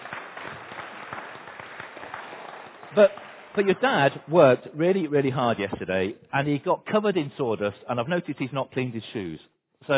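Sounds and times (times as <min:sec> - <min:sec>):
round of applause: 0:00.0 - 0:04.5
speech: 0:02.9 - 0:09.9.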